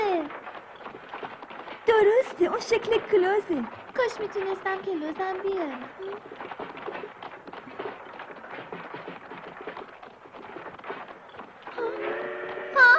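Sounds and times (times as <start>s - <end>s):
speech: 1.9s - 6.3s
train: 11.8s - 12.9s.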